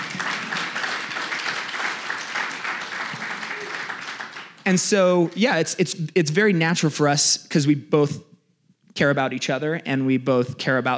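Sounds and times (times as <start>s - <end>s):
crowd applauding: 0.0s - 5.4s
speech: 4.7s - 8.3s, 9.0s - 10.9s.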